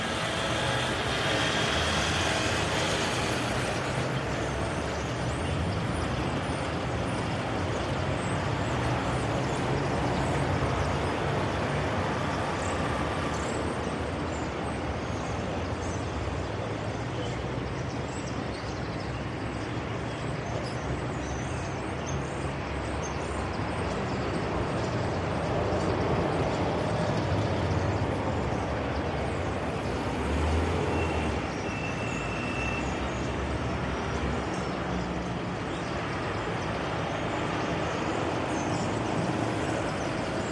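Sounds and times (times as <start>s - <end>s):
traffic in Morocco: 0.0s - 40.5s.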